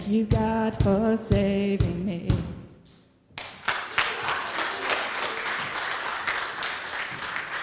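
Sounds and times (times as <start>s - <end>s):
speech: 0.2s - 2.5s
audience hand clapping: 3.4s - 7.6s.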